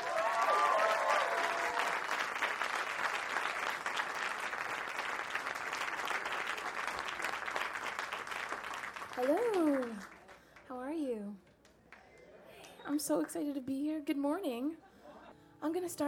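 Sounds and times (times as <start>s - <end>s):
audience applause at the Newport Folk Festival welcoming a performer: 0.0s - 10.6s
speech: 13.0s - 14.9s, 15.6s - 16.0s.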